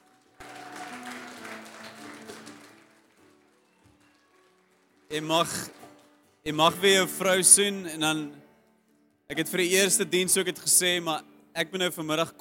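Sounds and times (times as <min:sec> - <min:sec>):
crowd hand clapping: 0:00.0 - 0:06.2
speech: 0:05.1 - 0:05.8, 0:06.4 - 0:08.4, 0:09.3 - 0:12.3.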